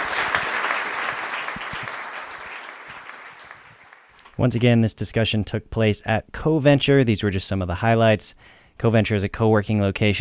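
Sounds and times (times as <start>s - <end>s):
audience applause: 0.0s - 4.1s
speech: 4.4s - 10.1s.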